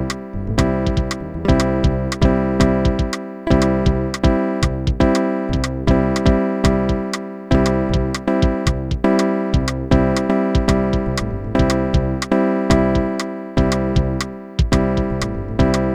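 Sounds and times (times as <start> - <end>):
slow alternative-style funk music: 0.0 - 15.9.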